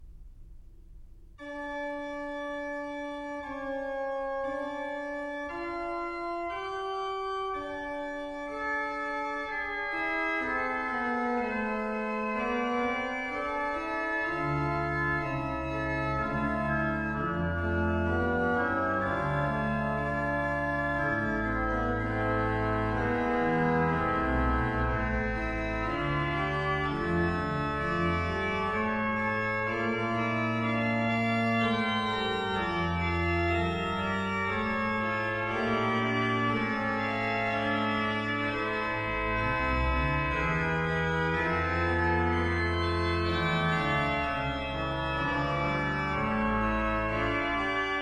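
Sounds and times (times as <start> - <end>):
organ piece: 0.0 - 47.9.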